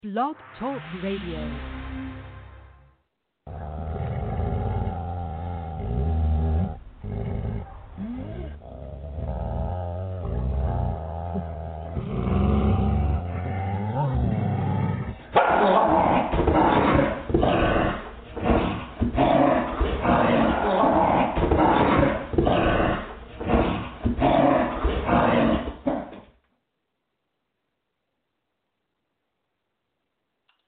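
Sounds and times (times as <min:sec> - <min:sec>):
speech: 0:00.0 - 0:01.8
dogs snarling: 0:03.5 - 0:26.2.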